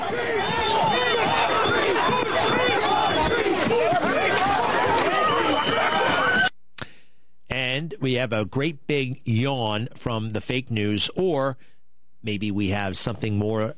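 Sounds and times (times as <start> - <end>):
protest crowd shouting and chanting on the street: 0.0 - 6.5
speech: 8.1 - 13.7.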